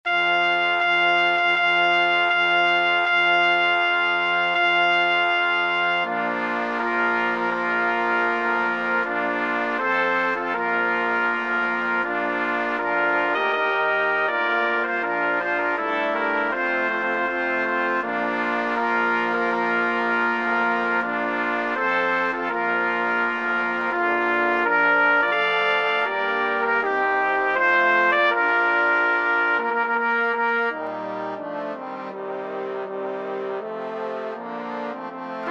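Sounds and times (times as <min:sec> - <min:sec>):
brass quintet: 0:00.0 - 0:35.4.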